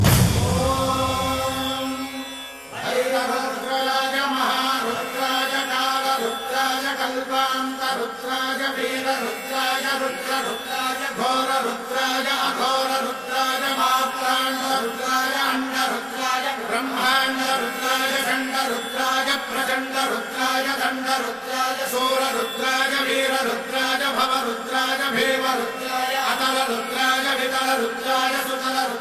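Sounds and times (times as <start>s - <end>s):
mantra ringtone: 0.9s - 29.0s.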